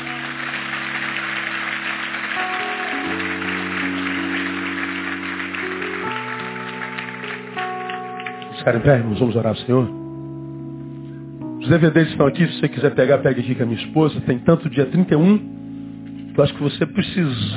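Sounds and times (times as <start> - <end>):
audience applause: 0.0 - 8.5
speech: 8.7 - 10.0, 11.7 - 15.6, 16.4 - 17.5.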